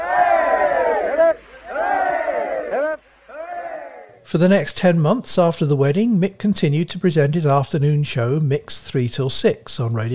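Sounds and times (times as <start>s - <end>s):
wedding guests shouting hooray cheers: 0.0s - 4.1s
speech: 4.3s - 10.1s.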